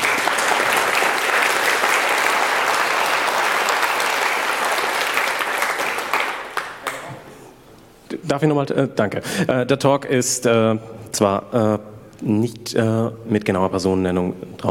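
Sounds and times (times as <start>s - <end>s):
audience applause: 0.0s - 7.3s
speech: 8.3s - 14.7s.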